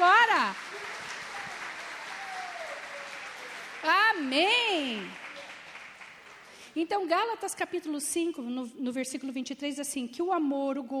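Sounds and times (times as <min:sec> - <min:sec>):
audience applause: 0:00.0 - 0:06.8
speech: 0:04.2 - 0:05.2, 0:06.8 - 0:10.9.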